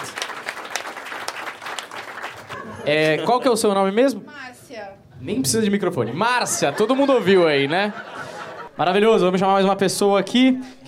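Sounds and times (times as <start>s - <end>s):
audience applause: 0.0s - 2.8s
laughter: 2.4s - 3.8s, 5.7s - 9.2s
speech: 2.8s - 8.2s, 8.8s - 10.8s.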